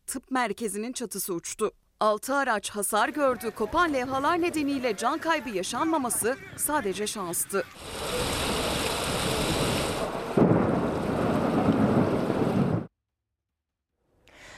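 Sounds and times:
speech: 0.1 - 8.5
heavy rain pouring: 6.4 - 12.9
thunder rumbling: 7.7 - 12.9.

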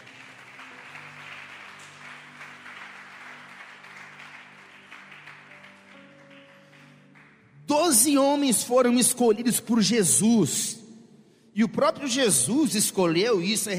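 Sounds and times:
audience applauding loudly: 0.0 - 8.4
speech: 7.8 - 10.8, 11.6 - 13.7.

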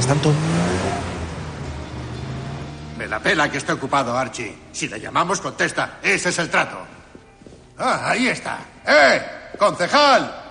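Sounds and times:
car driving away with engine revving: 0.0 - 4.8
speech: 0.1 - 0.6, 3.1 - 7.0, 7.8 - 10.4.

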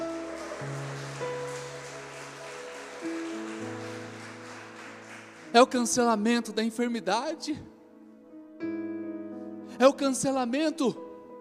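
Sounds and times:
audience applauding: 0.0 - 6.2
speech: 5.6 - 7.7, 9.8 - 11.0.

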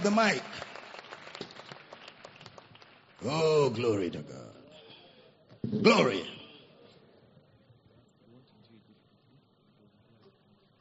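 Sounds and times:
speech: 0.0 - 0.6, 3.2 - 4.5, 5.7 - 6.4
audience clapping: 0.0 - 4.0.

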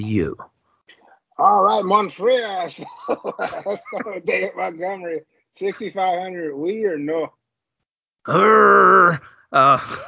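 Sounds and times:
speech: 0.0 - 0.5, 1.4 - 7.4, 8.2 - 10.0
laughter: 2.4 - 6.5, 9.7 - 10.0
person playfully imitating a growl: 8.3 - 10.0.

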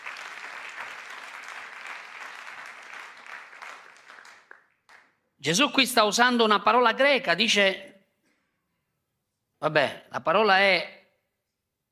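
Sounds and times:
audience applause: 0.0 - 5.1
speech: 5.4 - 7.9, 9.6 - 11.0.

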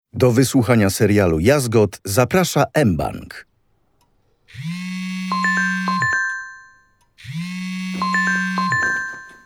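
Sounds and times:
speech: 0.2 - 3.5, 4.5 - 4.8
telephone ringing: 4.5 - 9.4.

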